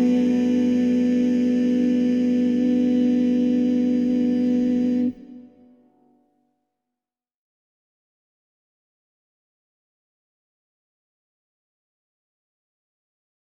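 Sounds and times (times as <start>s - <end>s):
alto: 0.0s - 6.0s.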